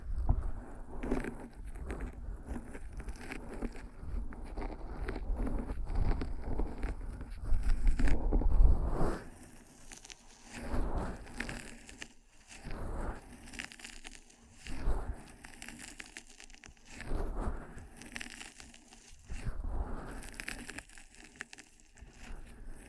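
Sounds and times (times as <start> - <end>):
ear massage rubbing and crinkling: 1.0 - 22.8.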